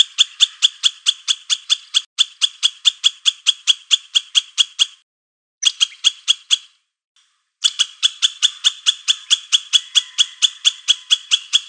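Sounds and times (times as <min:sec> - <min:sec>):
squirrel producing raspy barks: 0:00.0 - 0:05.0, 0:07.6 - 0:11.6.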